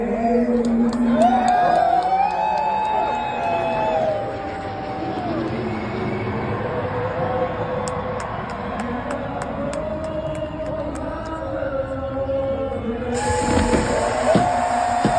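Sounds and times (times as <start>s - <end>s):
scattered whoops and rising shouts: 0.2s - 9.4s, 13.2s - 15.1s
big stadium crowd cheering: 0.2s - 15.1s.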